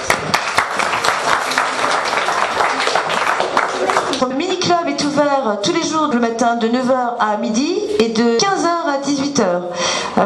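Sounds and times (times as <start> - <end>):
crowd applauding: 0.0 - 4.3
speech: 5.4 - 10.2.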